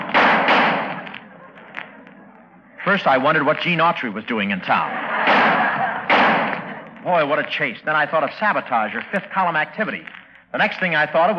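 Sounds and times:
Army .45 pistol shots: 0.0s - 1.2s, 5.2s - 6.8s
laughter: 0.8s - 10.0s
speech: 2.8s - 5.2s, 7.0s - 11.3s.

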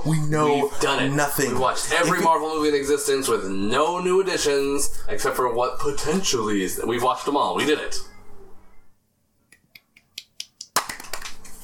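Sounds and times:
speech: 0.0s - 8.1s
single loud sharp hand clap: 9.8s - 11.6s.

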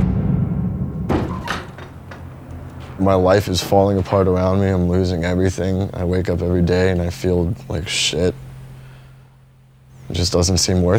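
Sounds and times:
sharp dull punch thud: 0.0s - 1.7s
low rumbling hum: 0.0s - 10.9s
speech: 3.0s - 8.4s, 10.1s - 10.9s.

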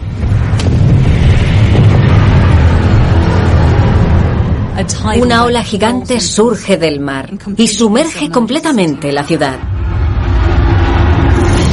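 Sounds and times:
loud sustained earthquake rumble sound effect: 0.0s - 6.8s, 9.6s - 11.7s
speech: 4.8s - 9.7s.

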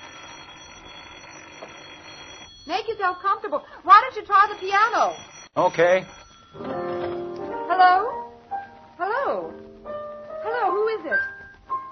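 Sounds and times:
telephone ringing: 0.0s - 7.8s
speech: 2.7s - 6.8s, 7.8s - 8.2s, 9.0s - 9.6s, 10.6s - 11.3s.

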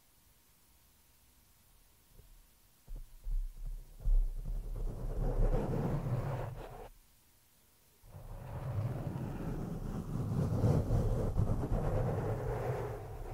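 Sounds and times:
scratching and rubbing on a microphone: 3.8s - 6.9s, 8.1s - 13.3s.

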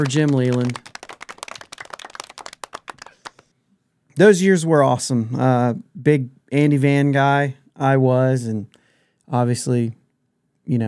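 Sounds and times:
speech: 0.0s - 0.9s, 4.2s - 10.0s, 10.7s - 10.8s
canned clapping sound effect from a button: 0.0s - 3.5s.

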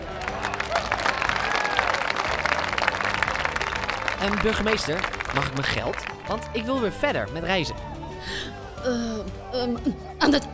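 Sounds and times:
faint cheers: 0.0s - 4.2s
crowd applauding: 0.0s - 7.3s
speech: 4.2s - 10.5s.

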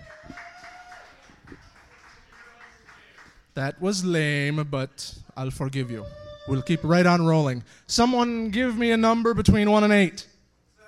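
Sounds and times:
audience applause: 0.0s - 3.4s
speech: 3.6s - 10.3s.

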